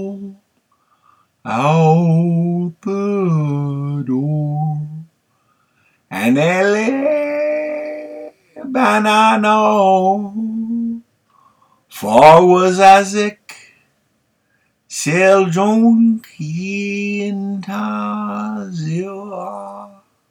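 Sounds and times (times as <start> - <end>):
a cappella version of a musical score: 0.0 - 0.4, 1.5 - 5.1, 6.1 - 11.1, 11.9 - 13.6, 14.9 - 20.1.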